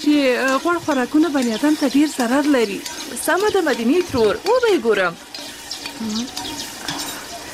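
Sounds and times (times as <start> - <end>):
onions frying in a small amount of oil: 0.0 - 7.5
stirring noises: 0.0 - 7.5
speech: 0.1 - 5.3, 6.0 - 6.7.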